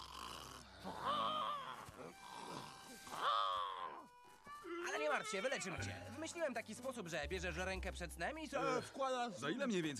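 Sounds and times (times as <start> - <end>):
voice imitating snoring: 0.0 - 3.9
speech: 5.1 - 9.9.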